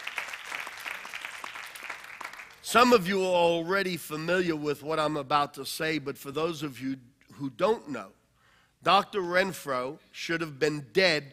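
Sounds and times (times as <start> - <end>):
audience applause welcoming a speaker at a women's church ministry gathering: 0.0 - 2.6
speech: 2.7 - 8.2, 8.8 - 11.3.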